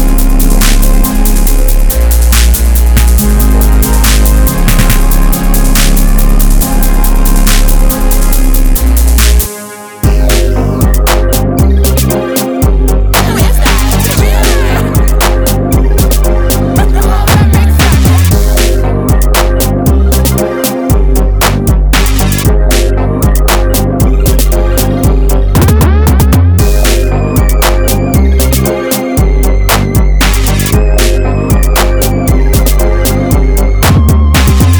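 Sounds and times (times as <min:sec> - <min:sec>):
trap drum kit: 0:00.0 - 0:34.7
laughter: 0:13.2 - 0:18.4.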